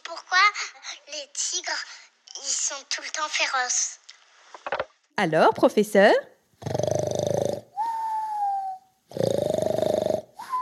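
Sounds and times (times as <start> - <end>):
speech: 0.1 - 4.0, 4.6 - 6.8
cartoonish snoring: 6.6 - 10.6
high whistle on the exhale: 7.8 - 8.9, 10.4 - 10.6.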